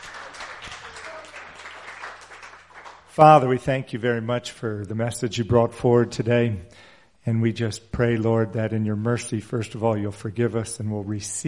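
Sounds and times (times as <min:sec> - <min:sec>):
church congregation cheering and applauding: 0:00.0 - 0:03.4
speech: 0:03.2 - 0:11.4.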